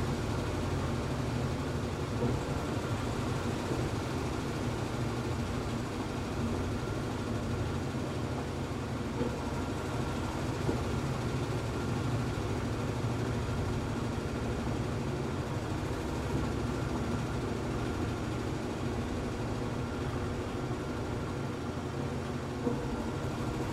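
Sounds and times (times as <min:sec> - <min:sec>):
washing machine: 0:00.0 - 0:23.7.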